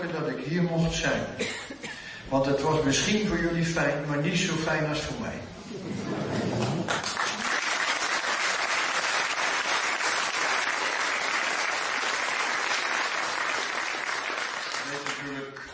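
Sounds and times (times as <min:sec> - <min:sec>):
speech: 0:00.1 - 0:06.0
audience applause: 0:06.6 - 0:15.7.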